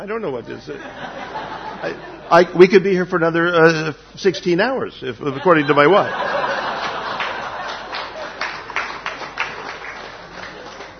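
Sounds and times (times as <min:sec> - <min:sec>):
speech: 0:00.0 - 0:01.2, 0:01.8 - 0:06.4
laughter: 0:00.7 - 0:02.6, 0:05.3 - 0:10.9
crowd clapping: 0:06.7 - 0:10.9.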